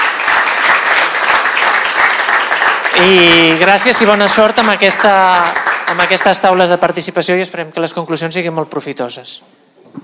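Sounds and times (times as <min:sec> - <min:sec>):
audience applause for the speakers at the close of an event: 0:00.0 - 0:06.8
speech: 0:03.0 - 0:09.6.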